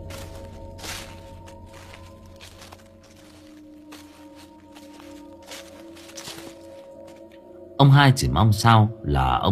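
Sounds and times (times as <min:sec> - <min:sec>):
rustling footsteps outside in the yard: 0:00.0 - 0:07.4
speech: 0:07.8 - 0:09.5.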